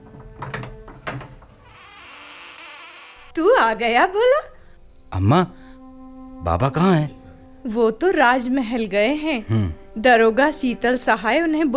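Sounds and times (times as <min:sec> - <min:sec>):
door latch clunks as a door is unlatched: 0:00.0 - 0:01.6
speech: 0:03.4 - 0:04.5, 0:05.1 - 0:05.6, 0:06.4 - 0:11.7.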